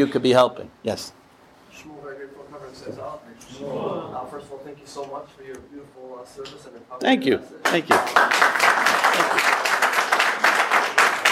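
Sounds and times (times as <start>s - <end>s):
speech: 0.0s - 1.2s, 1.8s - 9.6s
audience applause: 7.7s - 11.3s.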